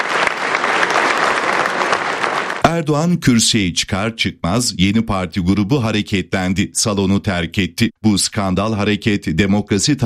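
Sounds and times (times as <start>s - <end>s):
applause in a parliamentary general assembly: 0.0s - 2.7s
speech: 2.8s - 10.0s.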